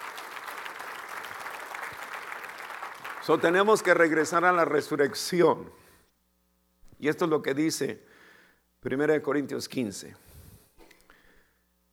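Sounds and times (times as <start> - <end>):
audience applauding: 0.0 - 4.3
speech: 3.2 - 5.8, 7.0 - 8.2, 8.8 - 10.3.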